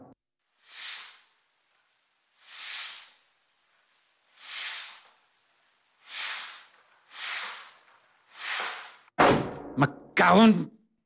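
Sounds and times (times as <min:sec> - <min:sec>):
air hissing from leaking organ bellows: 0:00.5 - 0:01.4, 0:02.3 - 0:05.3, 0:06.0 - 0:09.1
speech: 0:09.8 - 0:10.8.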